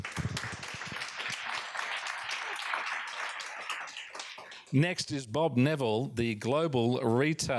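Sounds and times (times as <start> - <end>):
audience applause: 0.0 - 4.8
speech: 4.7 - 7.5.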